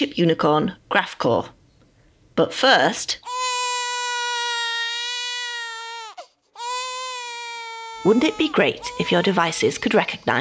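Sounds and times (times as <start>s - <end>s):
speech: 0.0s - 1.6s, 2.4s - 3.3s, 8.0s - 10.3s
baby crying: 3.2s - 9.7s.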